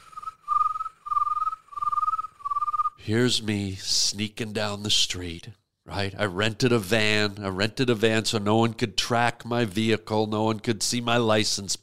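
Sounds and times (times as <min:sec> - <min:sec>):
crickets chirping: 0:00.0 - 0:03.0
speech: 0:03.1 - 0:11.8.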